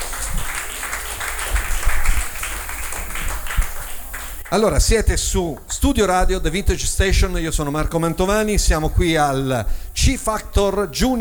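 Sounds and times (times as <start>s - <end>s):
audience applause: 0.0s - 4.9s
speech: 4.5s - 11.2s.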